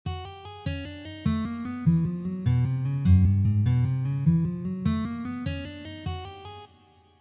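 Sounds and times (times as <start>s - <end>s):
hammer-on guitar note: 1.9s - 5.4s.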